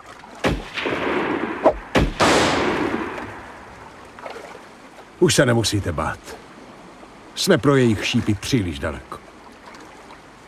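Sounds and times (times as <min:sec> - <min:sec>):
gunshots: 0:00.4 - 0:03.7
speech: 0:05.2 - 0:06.4, 0:07.4 - 0:09.2.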